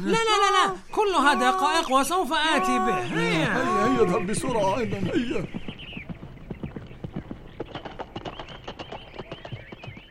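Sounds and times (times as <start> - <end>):
speech: 0.0 - 5.7
horse hooves clip-clopping: 2.6 - 10.0.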